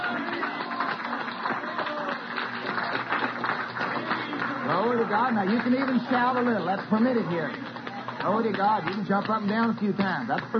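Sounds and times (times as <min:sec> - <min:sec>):
audience clapping hands: 0:00.0 - 0:10.5
speech: 0:04.9 - 0:10.5.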